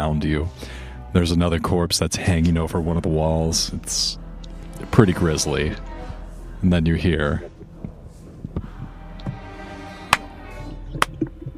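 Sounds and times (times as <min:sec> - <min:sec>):
speech: 0:00.0 - 0:04.2, 0:04.8 - 0:05.9, 0:06.6 - 0:07.5
slow clapping: 0:10.1 - 0:10.3.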